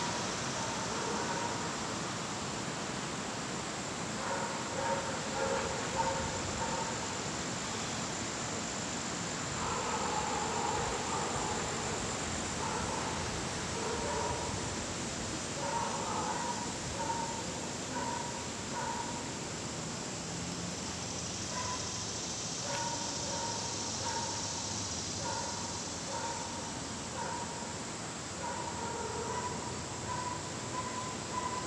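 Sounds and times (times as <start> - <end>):
steady hiss of insects or wind: 0.0 - 31.6
dog barking outdoors at dusk in the Catskills: 0.7 - 1.6, 4.2 - 7.0, 9.6 - 11.6, 13.8 - 14.5, 15.6 - 19.2, 22.7 - 24.4, 25.2 - 26.6, 27.2 - 27.6, 28.4 - 31.6.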